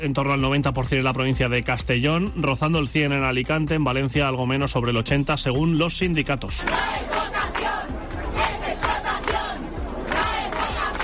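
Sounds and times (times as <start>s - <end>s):
speech: 0.0s - 7.3s
crowd of striking doctors protesting outside the government sub-delegation office in Alicante: 6.6s - 11.0s.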